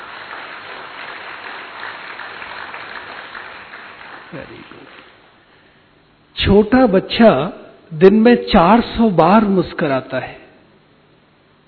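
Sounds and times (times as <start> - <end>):
audience applause: 0.0 - 5.2
speech: 4.3 - 5.2, 6.4 - 10.4.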